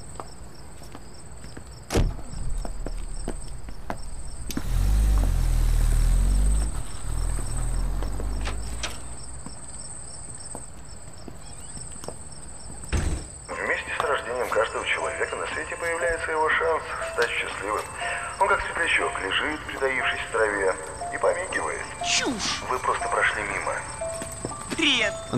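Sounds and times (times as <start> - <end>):
crickets chirping: 0.0 - 25.3
black foreign car's engine rumbling as it pulls up: 1.9 - 10.0.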